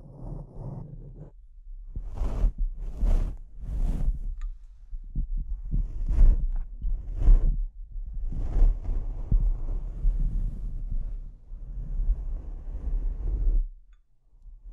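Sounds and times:
microphone scratching and rubbing: 0.0s - 4.4s, 5.1s - 13.7s.

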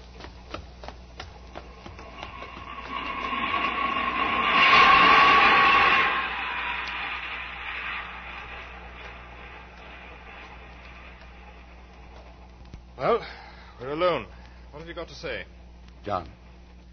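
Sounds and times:
rhythmic clicks: 0.0s - 4.9s, 6.3s - 13.0s
underground train rumbling and rattling in a tube station: 1.5s - 11.2s
underground train metallic screeching whine: 1.9s - 12.0s
speech: 15.0s - 16.4s.

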